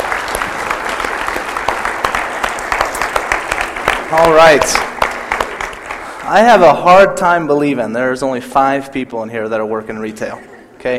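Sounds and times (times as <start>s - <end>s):
audience clapping: 0.0s - 6.9s
speech: 4.1s - 4.9s, 6.3s - 10.9s.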